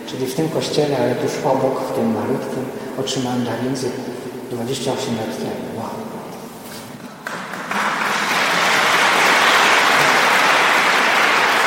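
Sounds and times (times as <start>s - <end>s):
speech: 0.1s - 6.0s
audience applause: 7.2s - 11.6s.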